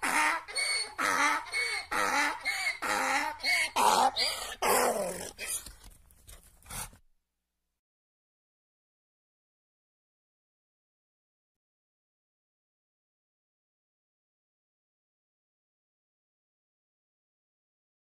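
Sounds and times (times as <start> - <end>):
donkey braying: 0.0 - 5.7.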